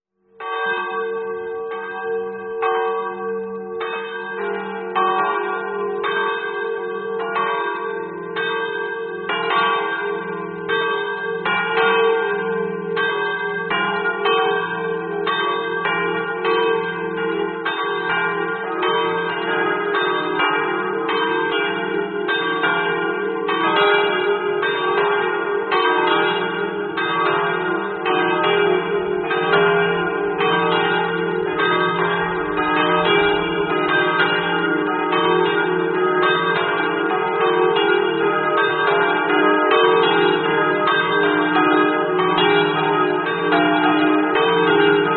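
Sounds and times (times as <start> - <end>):
bells ringing: 0.4 - 45.1.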